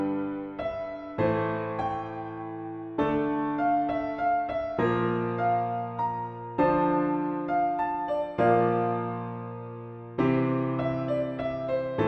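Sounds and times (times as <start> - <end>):
piano prelude: 0.0 - 12.0.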